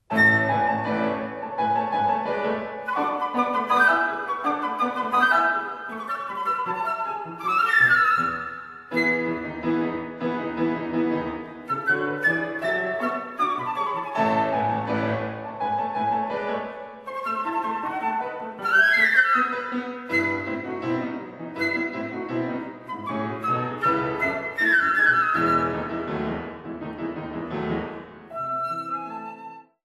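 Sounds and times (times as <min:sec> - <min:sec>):
presto giocoso flute sonata movement: 0:00.0 - 0:29.8.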